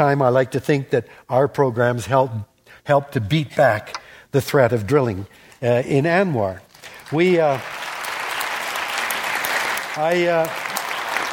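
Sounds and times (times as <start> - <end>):
speech: 0.0 - 7.9, 10.0 - 10.6
large audience applause: 6.8 - 11.3.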